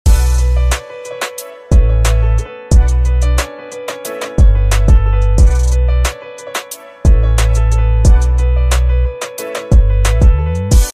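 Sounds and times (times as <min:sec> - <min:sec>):
instrumental ringtone beat: 0:00.1 - 0:10.9.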